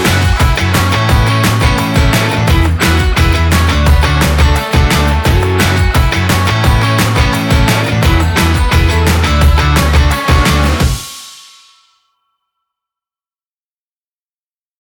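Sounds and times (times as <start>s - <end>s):
pop rock music: 0.0s - 11.2s.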